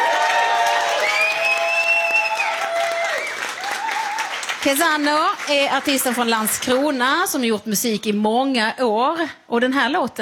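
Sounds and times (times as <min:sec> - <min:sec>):
crowd cheering: 0:00.0 - 0:04.8
audience applause: 0:00.0 - 0:06.9
speech: 0:04.6 - 0:10.2.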